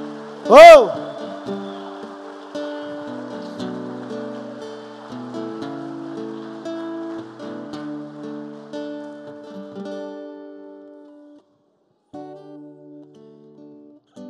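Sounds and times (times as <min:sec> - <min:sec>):
audience applauding: 0:00.0 - 0:10.8
speech: 0:00.4 - 0:01.6.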